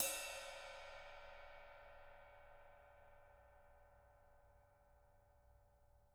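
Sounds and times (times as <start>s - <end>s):
ride cymbal: 0.0s - 2.0s.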